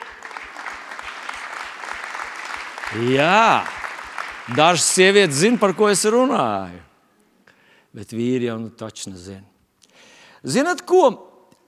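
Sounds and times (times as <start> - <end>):
audience applause: 0.0 - 6.6
speech: 2.9 - 3.8, 4.5 - 6.9, 7.9 - 9.5, 10.4 - 11.3.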